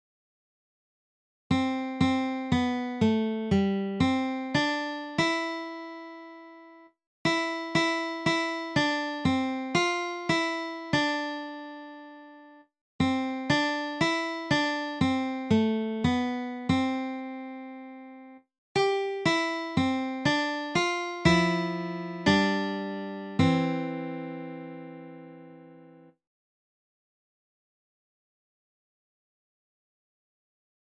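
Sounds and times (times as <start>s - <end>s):
guitar: 1.5s - 6.7s, 7.3s - 18.2s, 18.8s - 26.2s.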